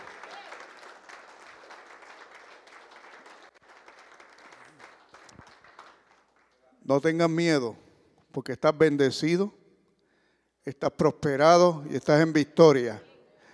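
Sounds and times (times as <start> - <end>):
faint voices and cheers: 0.0 - 0.8
audience applauding: 0.0 - 6.8
speech: 6.9 - 7.8, 8.4 - 9.6, 10.6 - 13.1.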